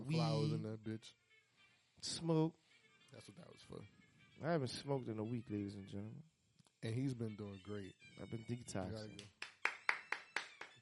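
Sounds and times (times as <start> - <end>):
speech: 0.1 - 1.3, 2.0 - 9.4
hand clap: 9.0 - 10.7.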